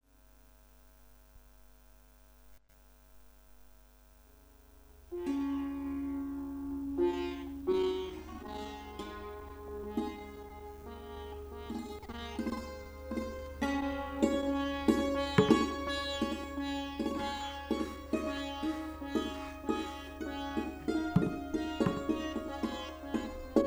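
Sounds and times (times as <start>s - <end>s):
santoor playing Kashmiri Sufi music: 5.2s - 23.6s.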